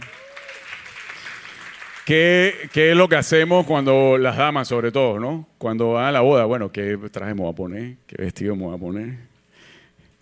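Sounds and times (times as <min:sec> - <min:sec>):
audience clapping: 0:00.0 - 0:03.1
speech: 0:02.1 - 0:09.3.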